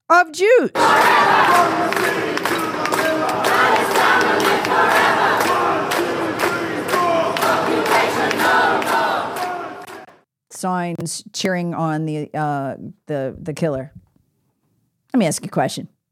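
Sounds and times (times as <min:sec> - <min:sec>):
speech: 0:00.1 - 0:02.5, 0:10.6 - 0:14.0, 0:15.1 - 0:16.0
crowd celebrating in the street: 0:00.8 - 0:10.2.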